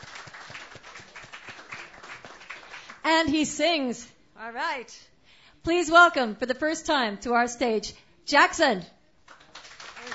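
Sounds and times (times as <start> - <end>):
audience applause: 0.0 - 3.0, 9.3 - 10.1
speech: 3.1 - 9.0.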